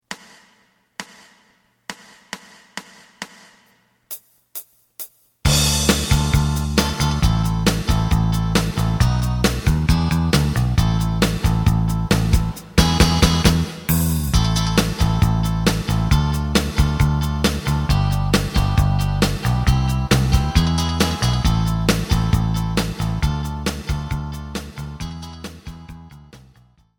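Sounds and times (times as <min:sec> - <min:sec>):
lead melody: 0:05.5 - 0:26.3.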